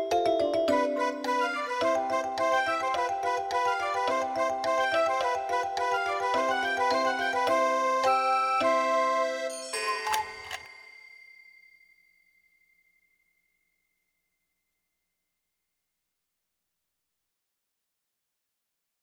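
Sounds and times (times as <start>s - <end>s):
flute clock playing an allegro: 0.6s - 12.0s.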